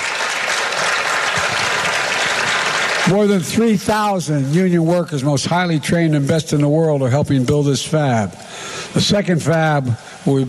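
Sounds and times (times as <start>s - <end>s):
audience clapping: 0.0s - 3.8s
speech: 3.1s - 10.4s.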